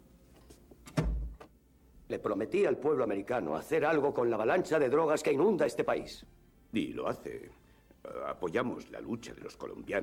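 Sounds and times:
door closing with heavy thud: 0.9 - 1.5
speech: 2.1 - 10.0.

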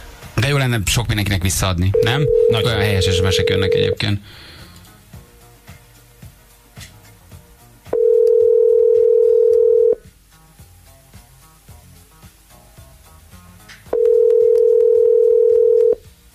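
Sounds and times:
speech: 0.4 - 4.5
telephone ringback tone: 1.9 - 4.0, 7.9 - 10.1, 13.9 - 16.1.

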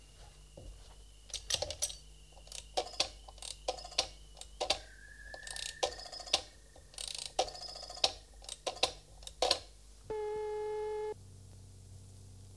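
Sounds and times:
steady electronic telephone ring tone: 0.7 - 11.1
rotary telephone dial clicking and whirring: 1.3 - 4.9, 5.4 - 9.7.

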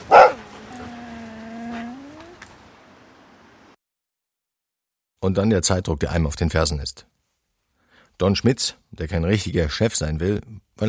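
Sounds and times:
dog whimpering: 0.0 - 2.6
speech: 5.2 - 7.1, 8.2 - 10.8.

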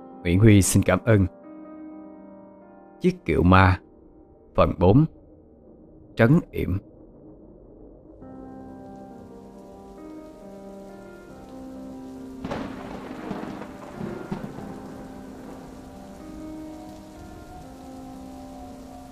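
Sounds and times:
speech: 0.2 - 1.4, 3.0 - 3.8, 4.6 - 5.2, 6.2 - 6.9
heavy rain downpour on the road: 9.0 - 19.1.

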